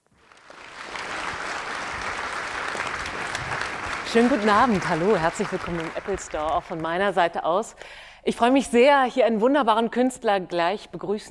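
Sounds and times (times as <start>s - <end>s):
audience applause welcoming a guest host in an Apple Store: 0.0s - 7.3s
speech: 4.1s - 11.2s.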